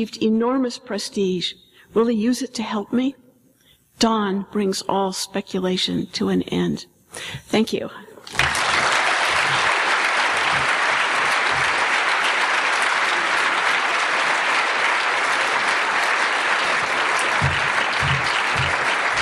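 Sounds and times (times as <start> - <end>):
speech: 0.0 - 3.2, 4.0 - 8.4
audience applause: 8.3 - 19.2.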